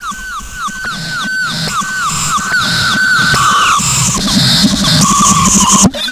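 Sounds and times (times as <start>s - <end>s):
reversed cyber sound: 0.0s - 6.0s.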